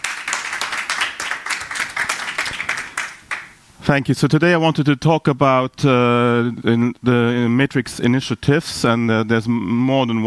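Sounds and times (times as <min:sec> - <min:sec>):
audience applause: 0:00.0 - 0:03.6
speech: 0:03.9 - 0:10.2.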